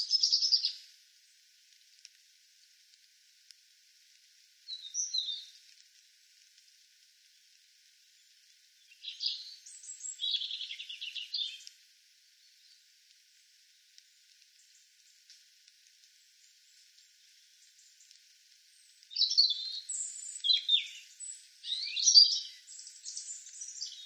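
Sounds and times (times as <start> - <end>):
European robin song: 0.0 - 1.4, 4.7 - 5.6, 8.1 - 11.8, 16.1 - 24.0.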